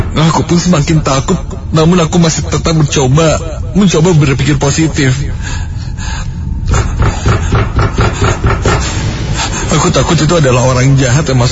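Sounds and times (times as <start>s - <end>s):
speech: 0.2s - 6.3s, 9.8s - 11.5s
pounding on a bedroom door: 6.8s - 8.9s.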